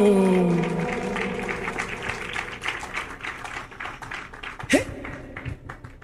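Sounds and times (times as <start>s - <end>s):
sustained vocal tone: 0.0s - 2.7s
audience applause: 0.0s - 6.0s.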